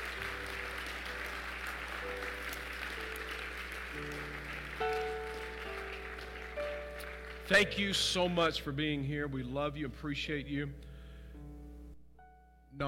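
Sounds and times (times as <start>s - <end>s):
audience applause: 0.0s - 8.0s
speech: 7.5s - 10.9s.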